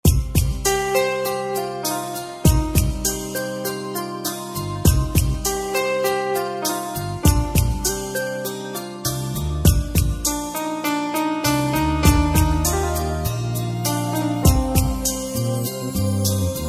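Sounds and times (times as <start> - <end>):
Telugu ringtone music: 0.0 - 16.6.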